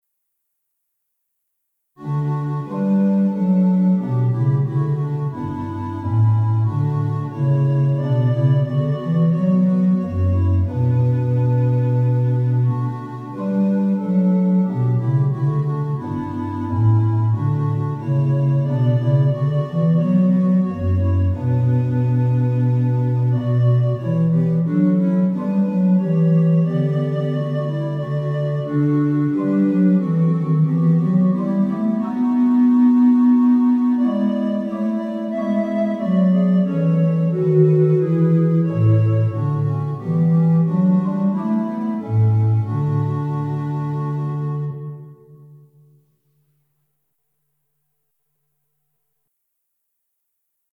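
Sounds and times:
instrumental music: 2.0s - 49.0s.

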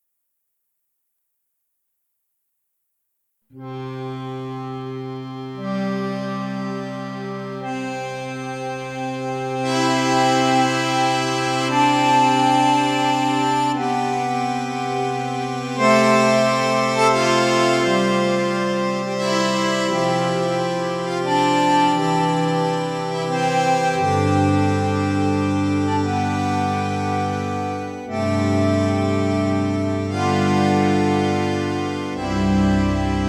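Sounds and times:
instrumental mass music: 3.6s - 33.2s.

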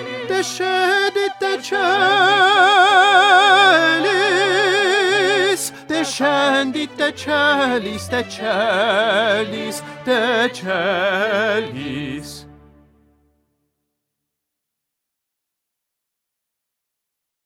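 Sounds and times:
tenor singing: 0.0s - 12.6s.

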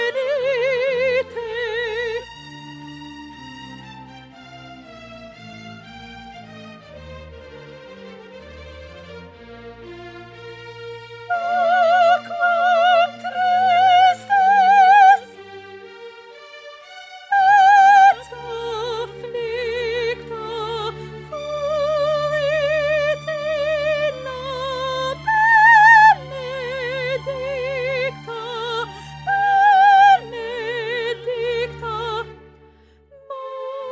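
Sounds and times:
soprano singing: 0.0s - 2.5s, 11.2s - 33.8s.

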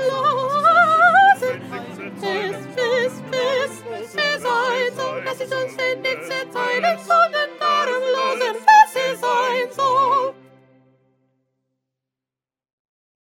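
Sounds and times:
soprano singing: 0.0s - 10.6s.

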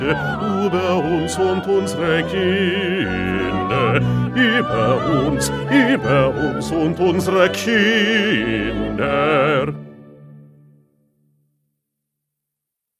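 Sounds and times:
bass: 0.0s - 10.4s.

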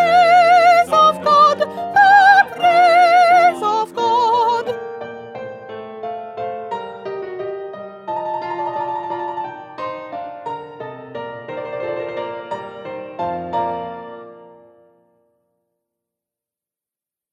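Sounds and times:
soprano singing: 0.0s - 4.9s.

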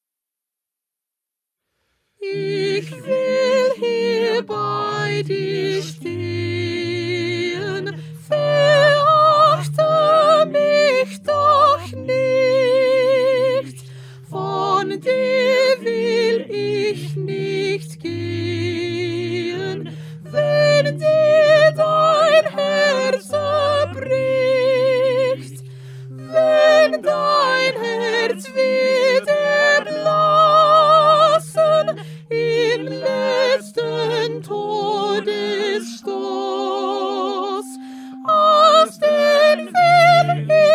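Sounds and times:
soprano singing: 2.2s - 40.7s.

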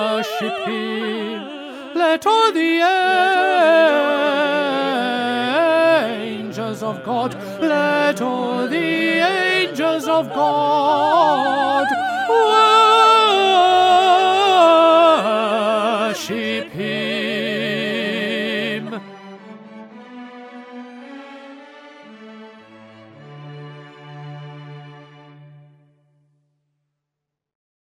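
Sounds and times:
tenor singing: 0.0s - 20.1s.

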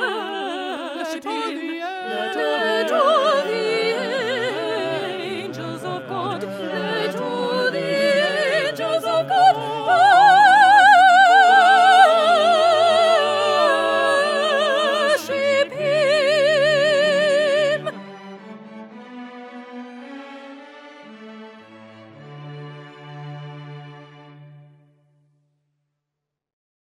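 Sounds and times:
soprano singing: 0.0s - 19.0s.

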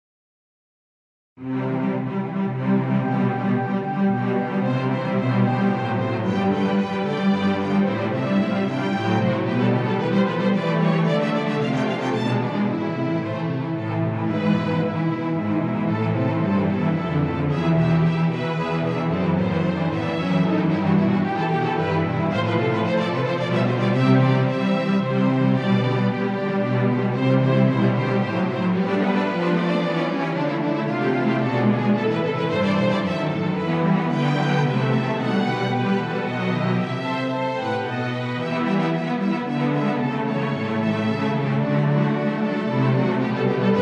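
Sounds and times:
instrumental music: 1.4s - 43.8s.

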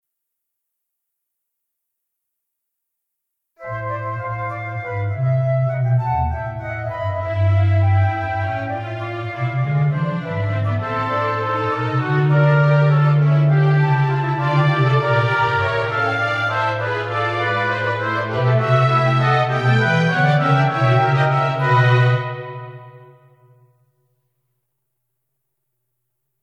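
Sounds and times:
instrumental music: 3.6s - 24.0s.

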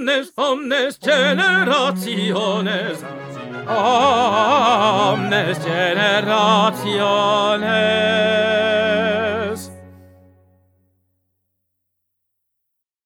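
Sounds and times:
tenor singing: 0.0s - 10.4s.

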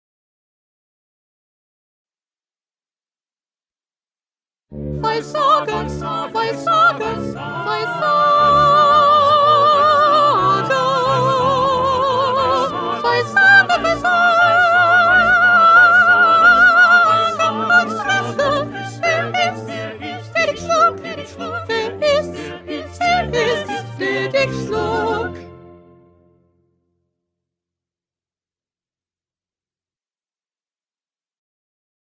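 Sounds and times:
first soprano singing: 4.9s - 25.6s.

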